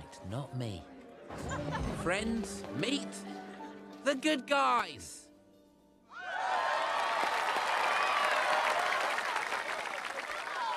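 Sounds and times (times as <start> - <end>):
speech: 0.2 - 5.2
crowd cheering and screaming excitedly: 6.1 - 10.7
applause: 6.4 - 10.7.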